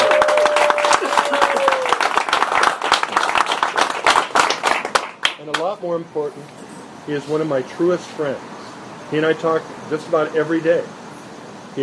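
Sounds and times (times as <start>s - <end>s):
audience applause: 0.0s - 5.4s
speech: 6.0s - 8.5s, 9.1s - 11.0s.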